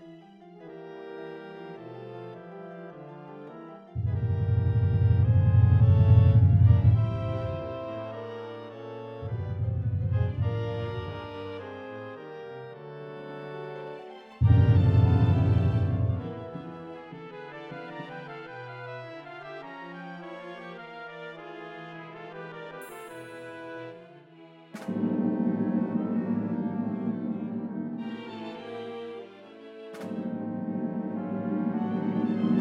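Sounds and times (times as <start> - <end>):
MIDI realization music: 3.4 - 12.3, 14.4 - 18.0, 24.8 - 32.5.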